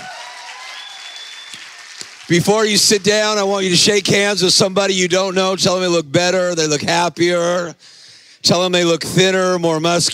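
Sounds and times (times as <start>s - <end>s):
audience shouting: 0.0s - 1.8s
audience clapping: 0.0s - 4.1s
speech: 2.3s - 10.1s.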